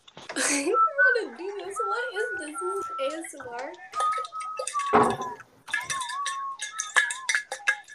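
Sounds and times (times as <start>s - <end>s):
speech: 0.5s - 4.0s, 4.6s - 5.5s
water being poured into a cup: 4.0s - 7.9s.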